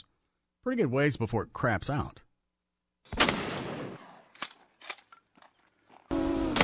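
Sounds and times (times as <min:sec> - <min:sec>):
speech: 0:00.6 - 0:02.2
shotgun blast heard from a drone: 0:03.1 - 0:04.3.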